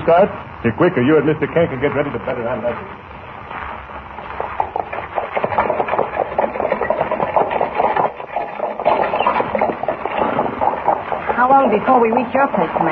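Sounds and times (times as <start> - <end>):
speech: 0.0 - 3.6, 11.5 - 12.9
horse hooves pulling a buckboard wagon: 3.5 - 12.9
buckboard wagon wood rattling: 4.2 - 12.9.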